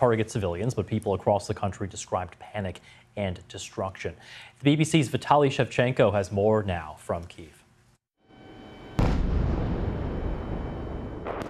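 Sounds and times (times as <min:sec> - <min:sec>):
speech: 0:00.0 - 0:07.6
missile and drone attack explosion: 0:09.0 - 0:11.4
sharp blast: 0:09.0 - 0:11.4.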